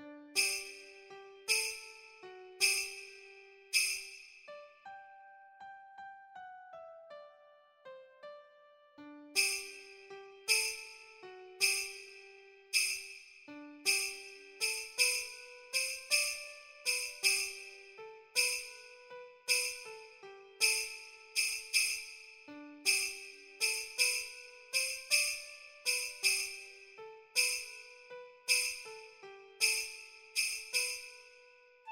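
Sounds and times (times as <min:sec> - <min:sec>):
waltz percussion: 0:00.4 - 0:04.6, 0:09.4 - 0:11.1, 0:11.6 - 0:31.3.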